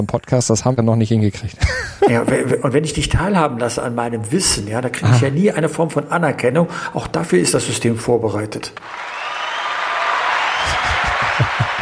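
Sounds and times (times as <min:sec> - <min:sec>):
speech: 0:00.0 - 0:09.2
laughter: 0:01.6 - 0:02.7, 0:10.2 - 0:11.7
applause: 0:08.8 - 0:11.7.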